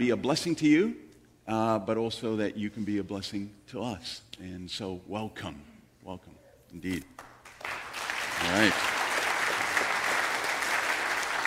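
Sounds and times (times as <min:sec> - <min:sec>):
speech: 0:00.0 - 0:07.3, 0:08.4 - 0:09.0
audience clapping hands: 0:07.2 - 0:11.4.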